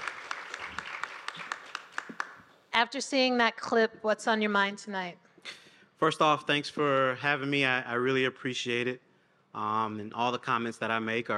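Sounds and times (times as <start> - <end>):
audience applause: 0.0 - 2.5
speech: 2.8 - 11.3.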